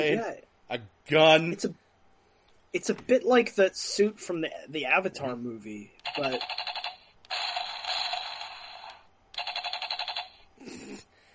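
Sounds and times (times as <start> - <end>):
speech: 0.0 - 1.8, 2.7 - 6.8
short lower mechanical whir of a mech toy: 6.0 - 10.5
rapid pulsing beeps from a mech toy: 6.1 - 8.6.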